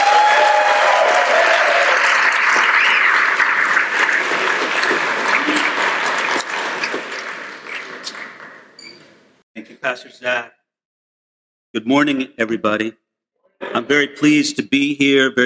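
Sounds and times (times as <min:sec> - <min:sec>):
conference audience applause welcoming a pastor to the stage: 0:00.0 - 0:08.7
speech: 0:11.7 - 0:13.0, 0:13.6 - 0:15.4.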